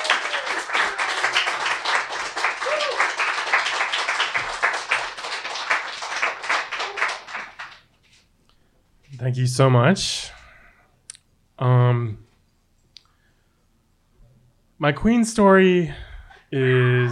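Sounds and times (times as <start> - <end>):
audience applause: 0.0 - 7.9
speech: 9.2 - 10.3, 11.6 - 12.2, 14.8 - 17.1.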